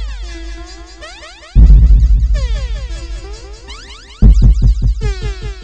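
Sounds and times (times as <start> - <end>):
downbeat dance groove: 1.6 - 5.3.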